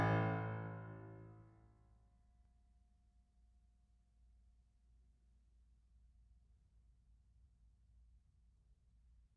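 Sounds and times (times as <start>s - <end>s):
piano: 0.0s - 1.3s.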